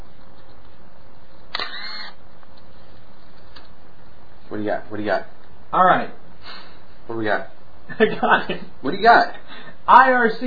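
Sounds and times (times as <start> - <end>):
faint hiss: 0.0 - 10.4
camera shutter firing: 1.5 - 2.2
speech: 4.5 - 10.4.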